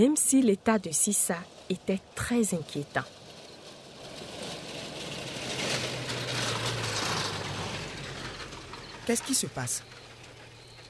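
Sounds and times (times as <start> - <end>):
speech: 0.0 - 3.2, 9.1 - 10.0
truck engine rumbling: 0.0 - 10.8
mechanical rattling: 3.1 - 10.8.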